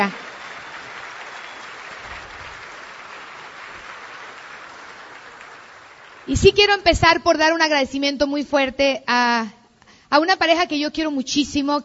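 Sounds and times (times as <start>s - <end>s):
large audience applause: 0.0s - 6.5s
speech: 6.3s - 11.8s.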